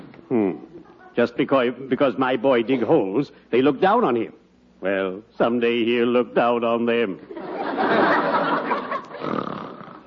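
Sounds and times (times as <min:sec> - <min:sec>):
speech: 0:01.2 - 0:08.4
laughter: 0:07.3 - 0:09.6
man snoring: 0:09.2 - 0:10.0.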